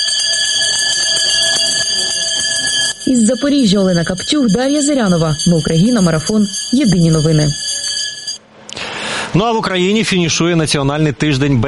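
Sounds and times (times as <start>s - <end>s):
school last bell ringing: 0.0s - 8.4s
speech: 3.1s - 7.7s, 9.3s - 11.6s.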